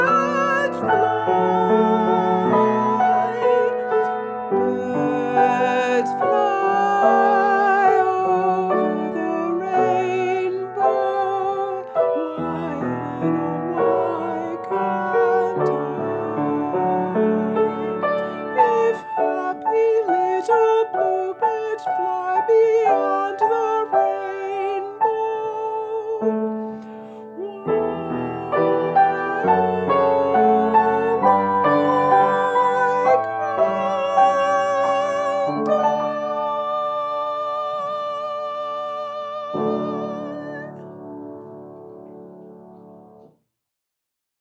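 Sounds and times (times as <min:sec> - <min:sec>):
soprano piano: 0:00.0 - 0:43.3.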